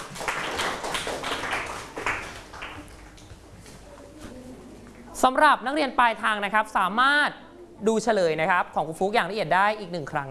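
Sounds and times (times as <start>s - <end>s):
clapping: 0.0s - 3.3s
speech: 5.2s - 10.2s.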